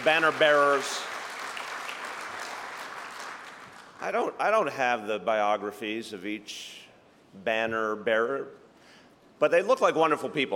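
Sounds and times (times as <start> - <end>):
speech: 0.0 - 1.1, 4.0 - 8.6, 9.4 - 10.5
audience applause for banner carriers at a ceremony: 0.0 - 4.0.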